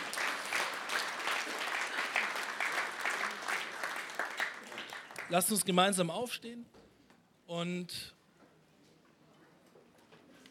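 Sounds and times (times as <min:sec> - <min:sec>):
audience clapping: 0:00.0 - 0:05.7
speech: 0:05.3 - 0:06.8, 0:07.5 - 0:08.2.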